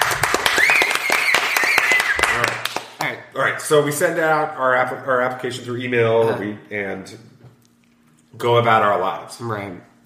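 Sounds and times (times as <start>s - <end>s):
crowd round of applause: 0.0s - 3.0s
thin high whistle-like tone: 0.5s - 2.2s
speech: 3.7s - 7.3s, 8.4s - 9.9s.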